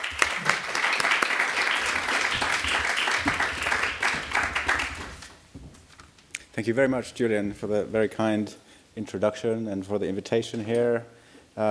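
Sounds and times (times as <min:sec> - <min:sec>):
audience applause welcoming a speaker to a lecture: 0:00.0 - 0:05.3
speech: 0:06.6 - 0:11.6.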